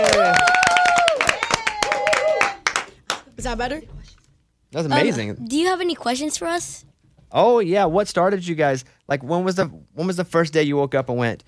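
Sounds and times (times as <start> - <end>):
audience applause: 0.0 - 3.3
speech: 3.4 - 11.4.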